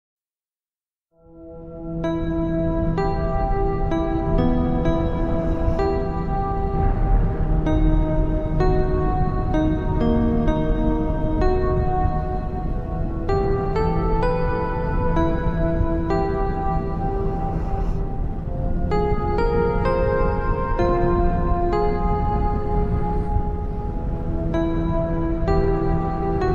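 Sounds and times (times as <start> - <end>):
ambient space music: 1.2 - 26.5.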